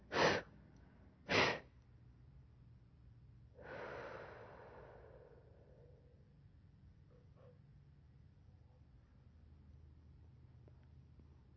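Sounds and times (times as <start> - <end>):
breathing during a guided meditation session: 0.0 - 0.4, 1.3 - 1.6, 3.6 - 6.4.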